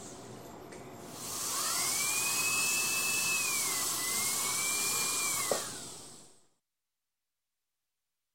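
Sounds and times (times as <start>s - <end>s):
dentist drill drilling patient's tooth: 1.1s - 6.3s.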